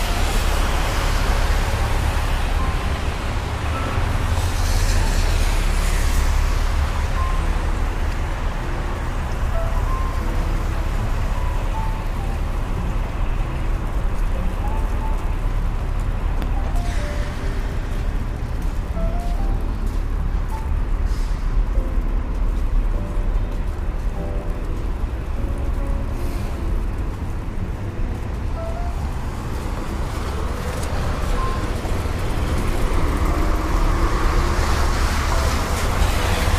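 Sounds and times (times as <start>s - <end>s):
passing vehicles rumbling: 0.0s - 36.5s
rain in New York: 0.0s - 36.5s
tires swishing on wet road: 0.0s - 36.5s.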